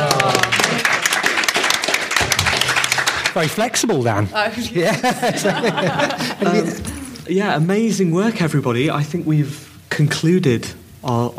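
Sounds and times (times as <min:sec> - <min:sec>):
audience clapping: 0:00.0 - 0:04.0
speech: 0:03.4 - 0:11.3
laughter: 0:03.9 - 0:07.2.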